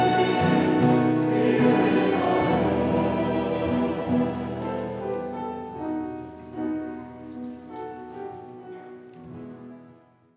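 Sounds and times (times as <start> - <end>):
string intro: 0.0 - 5.4.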